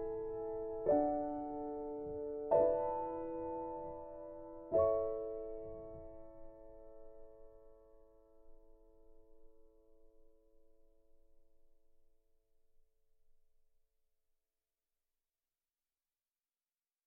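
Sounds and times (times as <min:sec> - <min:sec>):
solo piano: 0:00.0 - 0:11.1.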